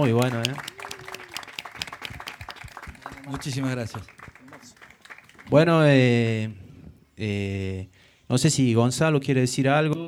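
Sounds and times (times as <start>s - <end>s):
speech: 0.0s - 0.7s, 3.3s - 4.2s, 5.5s - 6.6s, 7.2s - 10.0s
dense audience applause: 0.0s - 5.6s.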